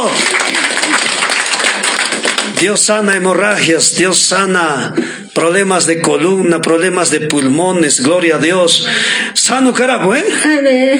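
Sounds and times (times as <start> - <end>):
audience applause: 0.0 - 3.2
speech: 2.6 - 10.9.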